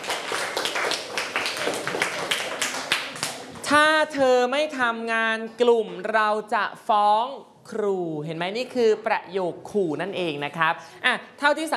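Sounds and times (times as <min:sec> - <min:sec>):
classroom clapping for a pupil: 0:00.0 - 0:03.7
speech: 0:03.7 - 0:11.7.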